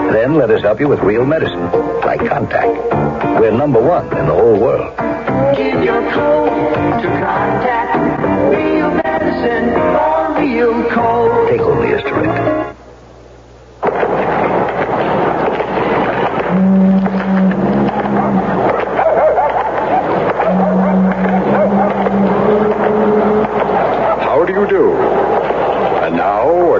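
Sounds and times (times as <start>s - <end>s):
speech: 0.2s - 12.8s
car engine sputtering and stalling: 13.8s - 26.7s.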